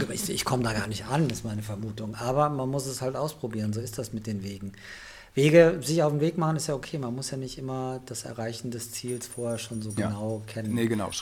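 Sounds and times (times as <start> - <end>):
speech: 0.2 - 11.2
dog tag jingling: 9.0 - 11.2.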